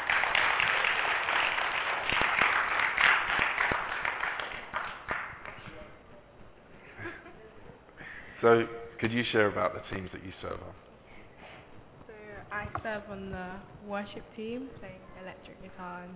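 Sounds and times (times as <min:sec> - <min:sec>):
audience applause: 0:00.0 - 0:05.8
speech: 0:08.4 - 0:10.9, 0:12.8 - 0:16.1.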